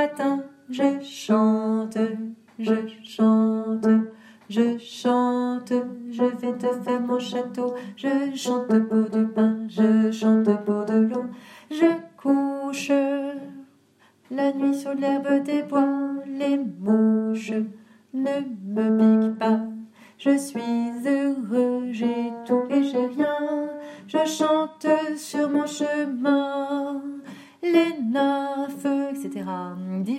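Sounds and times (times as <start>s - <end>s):
alto voice singing: 0.0s - 13.7s, 14.3s - 30.1s.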